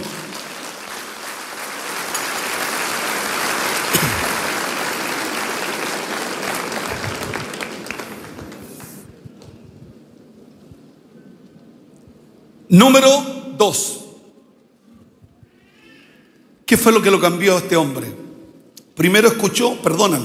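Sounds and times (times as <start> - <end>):
crowd applause: 0.0 - 9.2
speech: 12.7 - 14.0, 16.7 - 18.2, 19.0 - 20.2.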